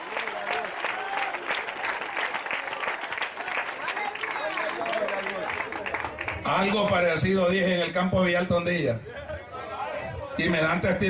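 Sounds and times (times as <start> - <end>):
audience applause: 0.0 - 7.2
speech: 6.5 - 9.1, 10.4 - 11.0.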